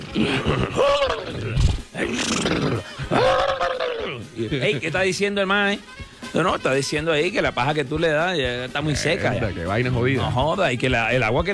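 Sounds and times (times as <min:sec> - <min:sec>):
voice imitating horse whinnies: 0:00.0 - 0:04.4
speech: 0:00.2 - 0:02.3, 0:04.4 - 0:11.5.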